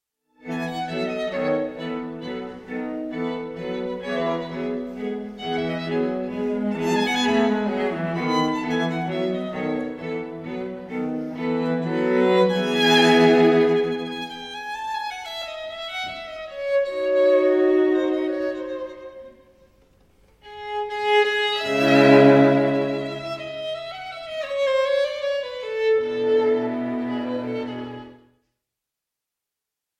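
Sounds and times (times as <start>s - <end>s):
string trio playing in G major: 0.4s - 19.4s, 20.4s - 28.2s.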